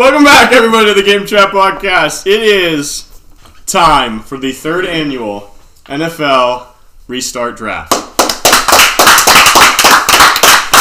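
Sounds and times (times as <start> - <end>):
speech: 0.0 - 3.1, 3.7 - 8.0
people clapping in studio: 7.9 - 10.8.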